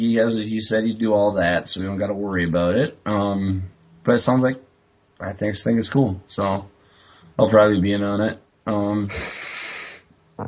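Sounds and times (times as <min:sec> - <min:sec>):
speech: 0:00.0 - 0:06.7, 0:07.4 - 0:09.4
person yawning: 0:09.1 - 0:10.4.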